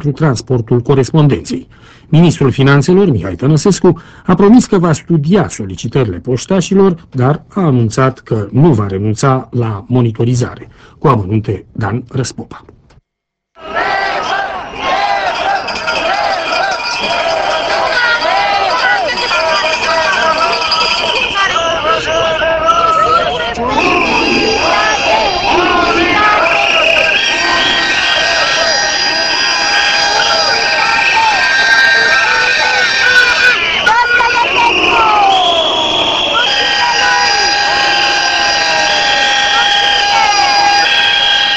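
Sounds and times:
speech: 0.0 - 12.8
horns: 13.6 - 41.5
protest crowd shouting and chanting in the street: 13.6 - 41.5
whistles: 14.2 - 17.8, 20.2 - 41.5.

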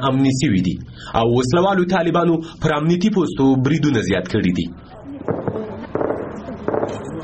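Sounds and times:
speech: 0.0 - 4.8
low noise: 0.0 - 7.2
gunfire at night around Tarinkot city: 5.3 - 7.2.

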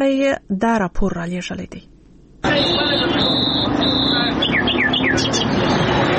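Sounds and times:
speech: 0.0 - 1.9, 2.5 - 4.0
crowd chatter at a wild bird market in central Kandahar city: 2.4 - 6.1
bulbuls, quail, partridges and mynas chirping at a Kandahar wild bird market: 2.5 - 6.1.

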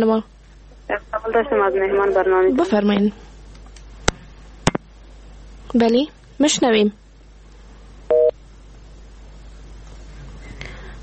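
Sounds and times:
speech: 0.0 - 3.3, 5.7 - 7.0
dual-pitched electronic telephone beep as a caller's line cuts off: 8.1 - 8.3.

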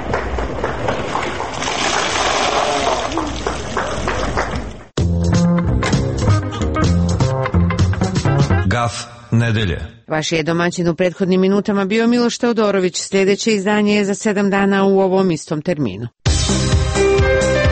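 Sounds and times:
bucket of ice water dumped over someone: 0.0 - 4.9
loud music: 5.0 - 9.9, 16.3 - 17.7
speech: 8.9 - 16.6.

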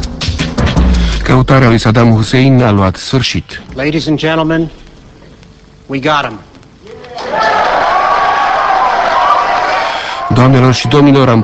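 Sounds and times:
speech: 1.3 - 4.8, 5.9 - 6.5, 10.3 - 11.4
journalists cheering and shouting at a press conference: 6.8 - 11.4.

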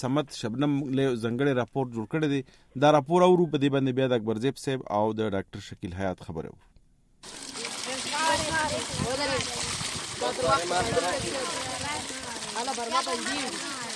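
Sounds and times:
speech: 0.0 - 7.5, 10.2 - 11.9, 12.6 - 13.8
light splashing of water running at a water borehole: 7.2 - 13.9
children chattering while filling water containers at a water borehole north of Pishin: 7.6 - 13.9.

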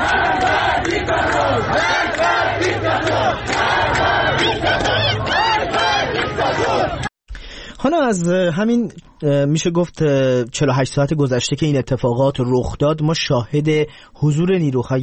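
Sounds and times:
large protest crowd chanting and shouting in unison: 0.0 - 7.1
speech: 7.8 - 15.0.

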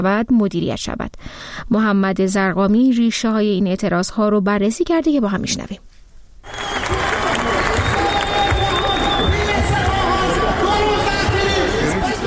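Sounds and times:
speech: 0.0 - 6.7
Isfahan protesters applauding on the dry Zayandeh River bed: 6.4 - 12.2
protesters cheering: 6.4 - 12.2.

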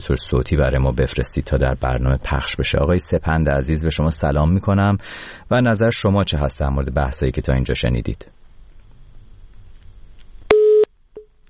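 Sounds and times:
speech: 0.0 - 8.4
electronic telephone busy tone beeps after phone line dropped: 10.5 - 11.3.

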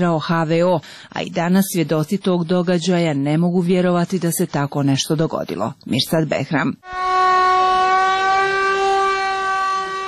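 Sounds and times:
speech: 0.0 - 7.1
general-danger air-raid siren sounding in Mostar: 6.8 - 10.0.

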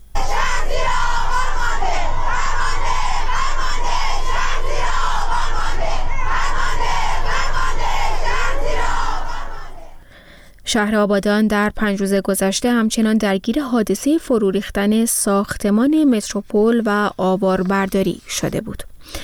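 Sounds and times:
protest crowd chanting slogans: 0.0 - 10.1
speech: 10.7 - 19.2.

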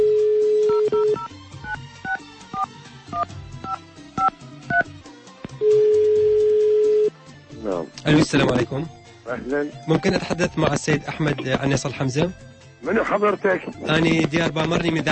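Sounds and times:
telephone ringing: 0.0 - 4.8, 5.6 - 7.2
speech: 8.1 - 15.1.

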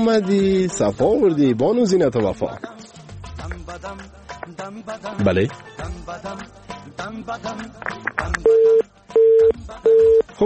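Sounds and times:
speech: 0.0 - 2.8, 3.8 - 10.4
telephone busy tone after a call-in caller's dropped line: 8.4 - 10.3.

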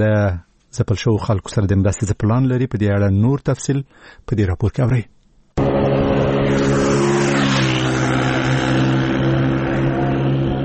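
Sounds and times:
speech: 0.0 - 5.7
motorcycle ridden very fast: 5.6 - 10.6.

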